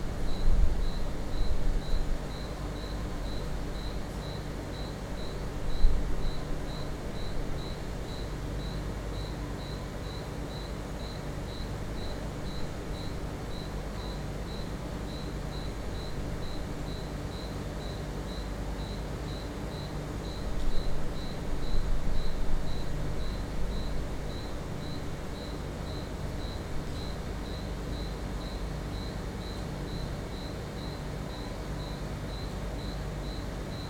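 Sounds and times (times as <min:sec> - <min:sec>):
crickets chirping at night from a balcony: 0:00.3 - 0:33.8.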